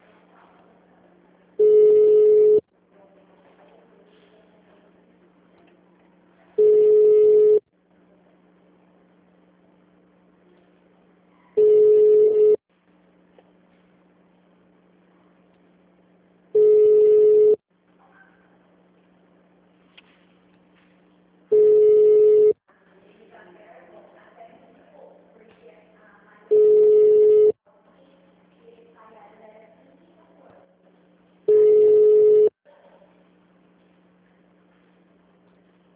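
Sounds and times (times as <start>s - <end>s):
faint low hum: 0.0s - 35.9s
ringback tone of an unanswered phone call: 1.6s - 2.6s, 6.6s - 7.6s, 11.6s - 12.6s, 16.6s - 17.6s, 21.5s - 22.6s, 26.5s - 27.6s, 31.5s - 32.5s.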